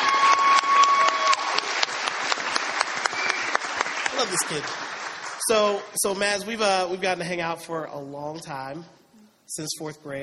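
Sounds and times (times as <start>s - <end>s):
audience applause: 0.0s - 5.9s
speech: 4.2s - 4.9s, 5.5s - 10.2s.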